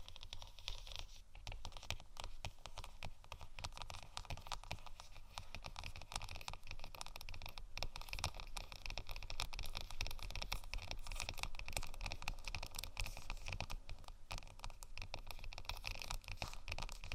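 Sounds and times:
scratching and tapping on faux leather: 0.0 - 17.1.

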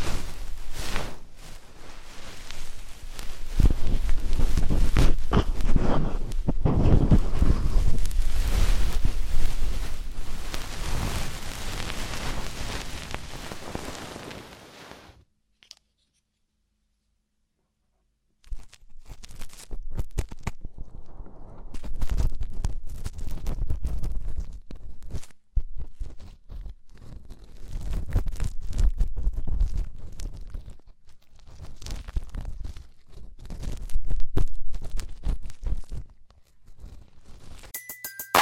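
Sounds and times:
scratchy rubbing and crackling of deep ear cleaning: 0.0 - 15.2, 18.4 - 37.8.

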